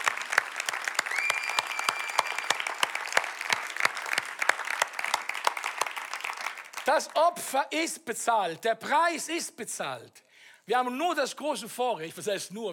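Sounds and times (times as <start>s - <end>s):
audience applause: 0.0s - 7.2s
speech: 6.9s - 12.7s.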